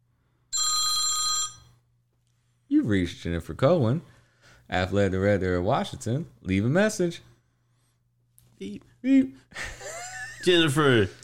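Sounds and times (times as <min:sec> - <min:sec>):
telephone ringing: 0:00.6 - 0:01.8
speech: 0:02.8 - 0:04.1, 0:04.7 - 0:07.3, 0:08.6 - 0:09.8, 0:10.4 - 0:11.2
laughter: 0:09.6 - 0:11.1.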